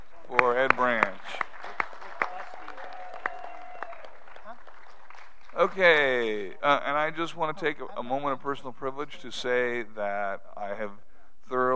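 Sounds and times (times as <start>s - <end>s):
audience applause: 0.3s - 6.5s
speech: 5.6s - 11.7s.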